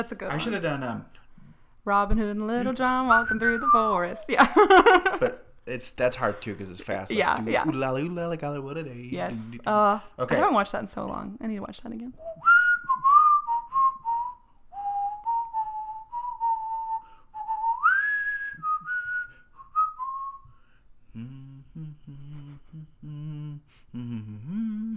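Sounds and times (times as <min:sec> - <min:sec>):
speech: 0:00.0 - 0:01.2, 0:01.8 - 0:12.6
person whistling a tune: 0:12.2 - 0:20.6
person humming: 0:21.1 - 0:24.9.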